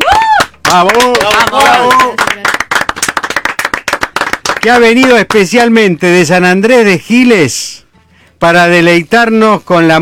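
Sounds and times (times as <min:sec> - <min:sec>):
audience applause: 0:00.0 - 0:05.3
speech: 0:00.7 - 0:02.4, 0:04.6 - 0:07.8, 0:08.4 - 0:10.0.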